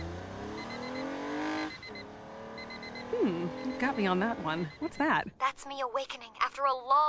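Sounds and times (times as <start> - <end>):
car engine revving: 0.0 - 4.7
faint high-pitched beeping: 0.0 - 5.2
speech: 3.2 - 7.0.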